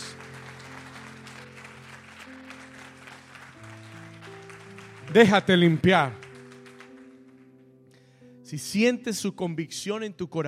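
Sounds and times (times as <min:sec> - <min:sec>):
audience clapping: 0:00.0 - 0:07.6
speech: 0:05.1 - 0:06.2, 0:08.5 - 0:10.4.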